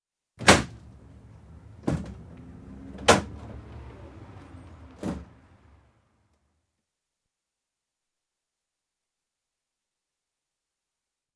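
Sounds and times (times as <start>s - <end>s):
ambulance rear doors opening, interior acoustic: 1.7s - 5.5s.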